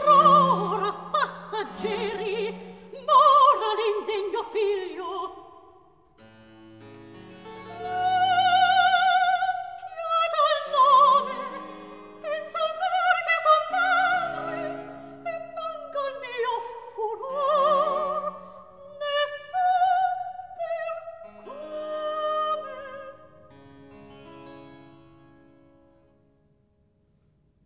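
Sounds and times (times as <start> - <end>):
recitative singing: 0.0 - 5.6, 7.8 - 23.4.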